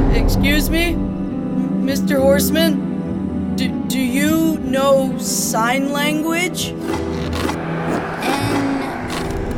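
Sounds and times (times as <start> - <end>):
speech: 0.1 - 1.2, 1.9 - 2.9, 3.6 - 8.6
sword carving letters: 6.8 - 9.5.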